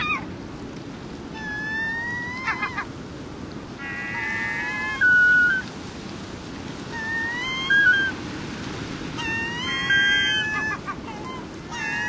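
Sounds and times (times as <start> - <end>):
Glaucous-winged gull mewing and calling in North America: 1.4 - 2.9, 3.8 - 5.7, 6.9 - 8.2, 9.1 - 12.0.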